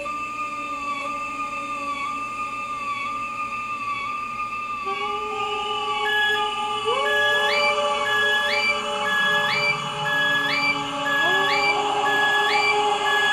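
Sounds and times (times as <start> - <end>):
noise: 0.0 - 13.3
voice: 4.9 - 13.3.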